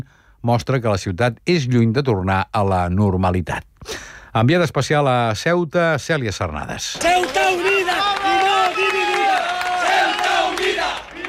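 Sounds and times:
speech: 0.0 - 7.6
crowd shouting at a far-right protest in a central square of Ceuta: 7.0 - 11.2.

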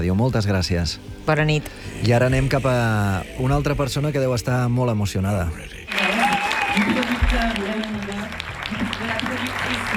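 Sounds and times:
speech: 0.0 - 5.8, 6.8 - 8.8
applause for an award winner: 5.9 - 9.9.

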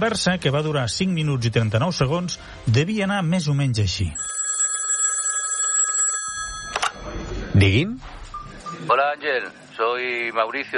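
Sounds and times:
speech: 0.0 - 4.4, 7.6 - 8.2, 8.8 - 10.7
telephone ringing with an incoming call: 4.2 - 7.1.

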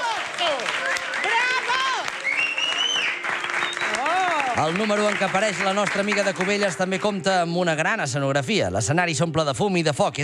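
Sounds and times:
audience ovation and applause: 0.0 - 7.4
speech: 4.6 - 10.2.

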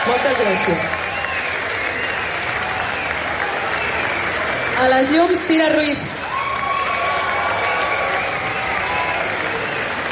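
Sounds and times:
cheers and whoops: 0.0 - 10.1
large audience applause: 0.0 - 10.1
speech: 0.1 - 1.2, 4.8 - 6.1.

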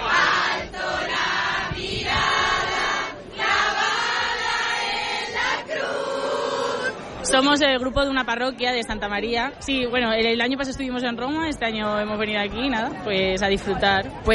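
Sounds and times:
crowd of faithful singing hymns: 0.0 - 7.2
speech: 7.3 - 14.3.

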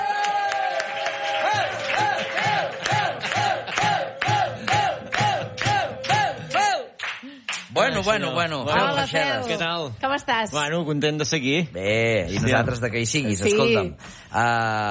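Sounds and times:
audience applause and cheering: 0.0 - 8.1
speech: 8.0 - 14.8.

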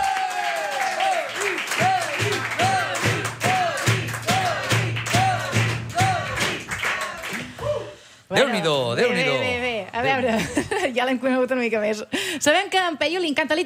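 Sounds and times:
whoops and cheering voices: 0.0 - 3.7, 5.2 - 8.0
loud crowd applause: 0.0 - 7.8
speech: 8.4 - 13.6.

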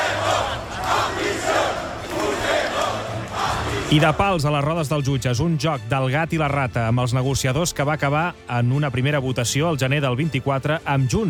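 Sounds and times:
street protest crowd shouting: 0.0 - 4.3
speech: 3.9 - 11.2.

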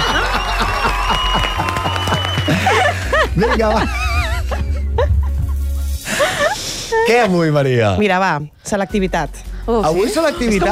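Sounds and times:
studio audience applause: 0.0 - 2.9
laughter: 0.0 - 6.6
speech: 3.4 - 4.0, 7.0 - 10.7.

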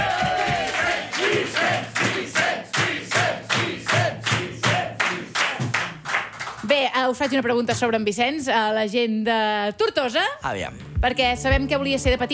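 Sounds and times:
audience applause and rhythmic clapping: 0.0 - 6.6
speech: 7.0 - 12.3.

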